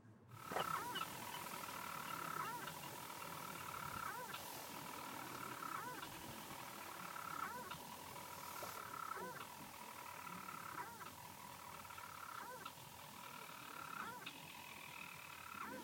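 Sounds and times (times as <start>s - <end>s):
storm petrel calls at breeding colony: 0.4s - 15.8s.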